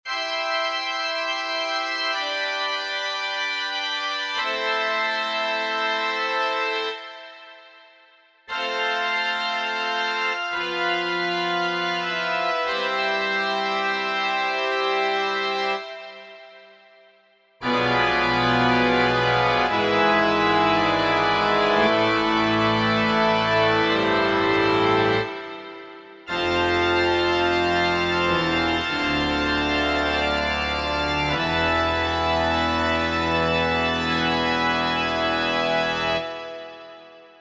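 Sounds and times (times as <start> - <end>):
church organ: 0.0 - 37.4.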